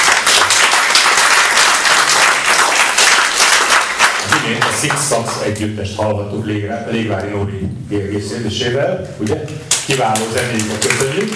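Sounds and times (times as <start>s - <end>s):
audience applause: 0.0s - 5.4s, 9.9s - 11.3s
speech: 4.8s - 11.3s.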